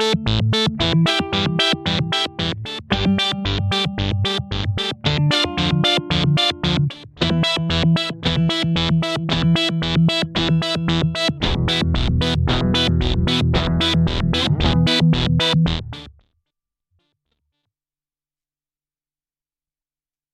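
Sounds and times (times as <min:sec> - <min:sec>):
Boss SY-1 synthesizer sequence: 0:00.0 - 0:16.1.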